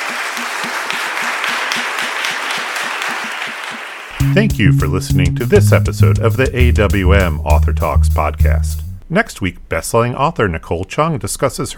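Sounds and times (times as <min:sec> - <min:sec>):
audience applause: 0:00.0 - 0:04.2
speech: 0:04.2 - 0:11.7.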